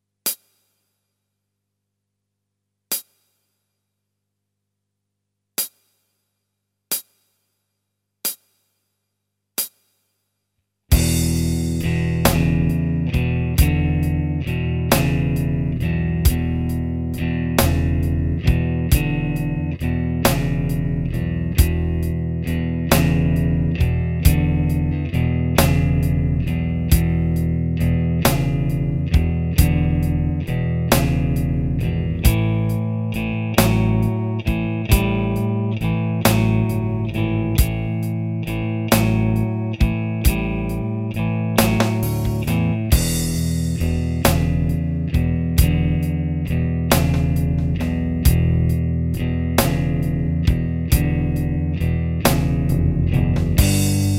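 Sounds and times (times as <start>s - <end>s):
basic blues rhythm groove: 10.9s - 54.1s.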